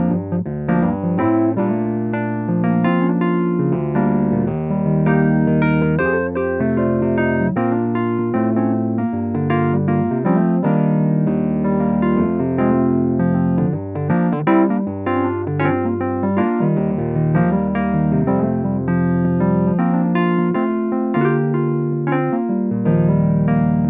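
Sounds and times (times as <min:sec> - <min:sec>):
electric piano groove through a speaker: 0:00.0 - 0:23.8.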